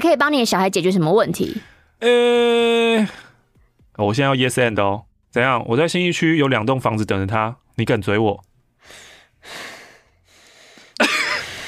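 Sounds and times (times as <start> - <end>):
speech: 0.0 - 3.3, 4.0 - 9.7
angry panting breaths: 8.8 - 11.6.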